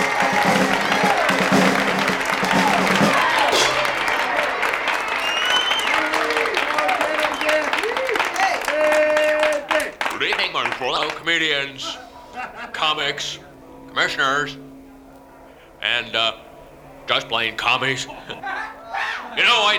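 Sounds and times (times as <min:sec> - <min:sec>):
audience applause at a comedy event: 0:00.0 - 0:12.0
laughter: 0:00.0 - 0:13.7, 0:17.8 - 0:19.7
audience voices calling out over the clapping: 0:00.0 - 0:19.7
speech: 0:11.4 - 0:12.0, 0:12.9 - 0:13.4, 0:14.0 - 0:14.6, 0:15.8 - 0:16.4, 0:17.1 - 0:18.5, 0:19.4 - 0:19.7.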